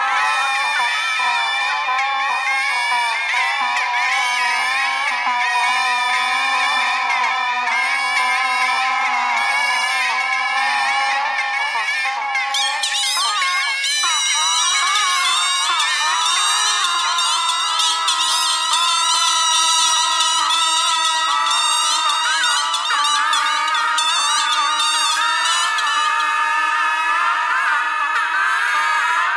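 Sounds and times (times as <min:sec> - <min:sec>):
bagpipe playing: 0:00.0 - 0:29.3
geese honking: 0:00.1 - 0:29.3.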